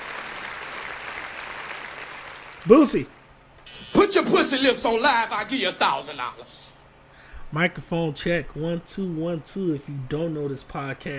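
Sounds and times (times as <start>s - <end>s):
round of applause: 0.0s - 3.1s
speech: 2.6s - 3.2s, 4.1s - 6.7s, 7.5s - 11.1s.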